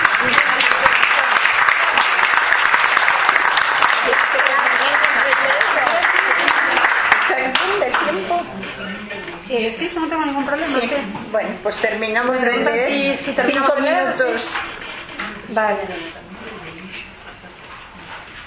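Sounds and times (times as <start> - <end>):
applause: 0.0 - 8.4
speech: 8.1 - 14.9, 15.5 - 16.2.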